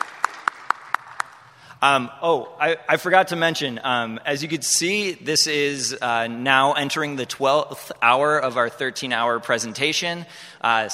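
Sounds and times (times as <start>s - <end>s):
sparse hand claps in applause for an event's AV crew: 0.0s - 1.5s
speech: 1.8s - 10.9s.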